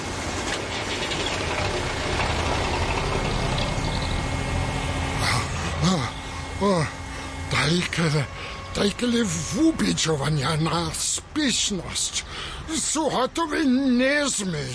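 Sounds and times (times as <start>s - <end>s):
concrete mixer churning a batch for a house foundation: 0.2s - 10.0s
speech: 7.7s - 14.7s.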